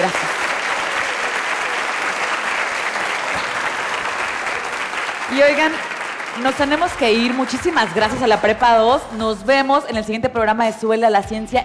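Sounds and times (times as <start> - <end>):
audience applause: 0.0 - 8.5
speech: 5.3 - 11.6.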